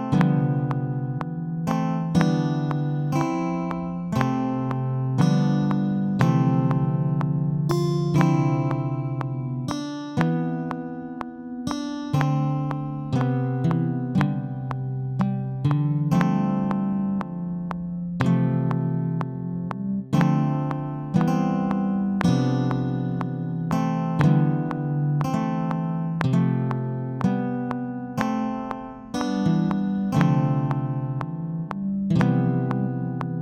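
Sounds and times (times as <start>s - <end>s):
drum beats: 0.1s - 10.9s, 11.7s - 33.3s.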